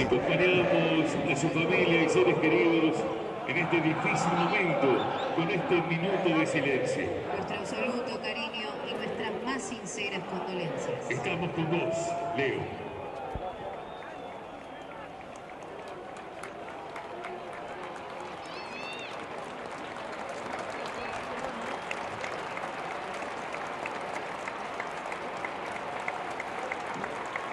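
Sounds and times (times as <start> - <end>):
speech: 0.0 - 12.9
large stadium crowd applauding: 0.0 - 27.5
faint whistles: 13.1 - 15.1.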